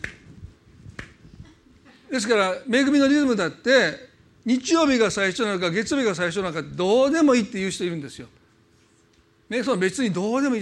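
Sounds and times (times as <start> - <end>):
rhythmic hand clapping: 0.0 - 0.3, 1.0 - 1.2
speech: 2.1 - 8.4, 9.5 - 10.5.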